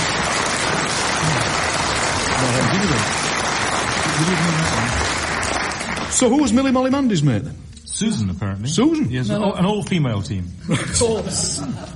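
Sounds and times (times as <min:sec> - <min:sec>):
audience applause: 0:00.0 - 0:06.6
speech: 0:02.5 - 0:03.2, 0:04.2 - 0:05.0, 0:06.2 - 0:11.9
laughter: 0:10.6 - 0:11.9.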